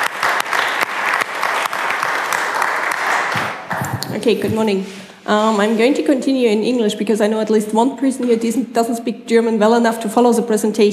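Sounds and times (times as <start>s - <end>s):
audience round of applause: 0.0s - 4.0s
speech: 4.2s - 10.9s.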